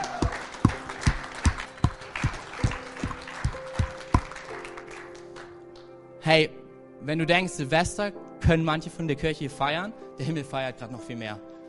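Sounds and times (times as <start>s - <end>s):
audience applause: 0.0s - 5.6s
speech: 6.3s - 11.5s.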